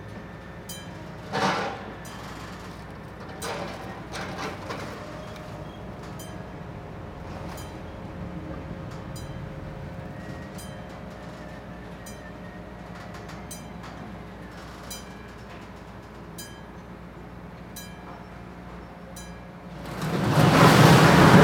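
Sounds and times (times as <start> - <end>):
scrap yard lifting crane: 0.0 - 21.4.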